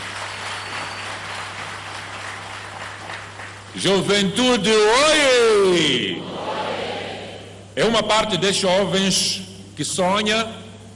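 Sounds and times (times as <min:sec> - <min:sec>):
audience applause: 0:00.0 - 0:03.7
faint low hum: 0:00.0 - 0:10.9
speech: 0:03.8 - 0:06.2, 0:07.8 - 0:10.6.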